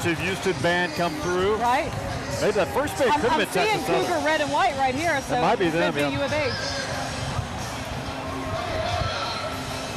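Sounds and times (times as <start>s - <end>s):
speech: 0.0s - 6.8s
excited crowd at outdoor rally: 0.0s - 9.9s.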